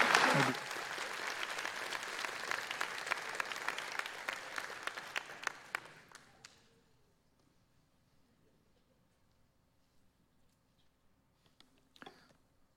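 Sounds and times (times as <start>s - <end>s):
church audience applause: 0.0s - 6.3s.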